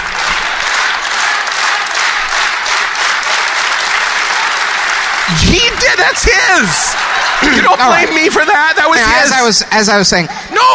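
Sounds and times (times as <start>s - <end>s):
audience rhythmic slow clapping: 0.0s - 7.6s
laughter: 5.3s - 10.7s
speech: 5.3s - 10.7s.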